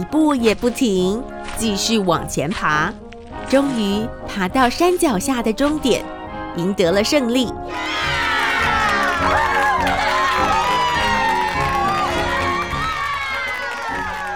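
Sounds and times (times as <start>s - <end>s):
speech: 0.0s - 8.2s
crowd cheering: 7.6s - 14.3s.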